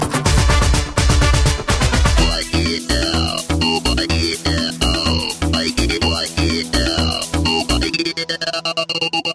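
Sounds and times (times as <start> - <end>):
Bollywood music: 0.0 - 8.2.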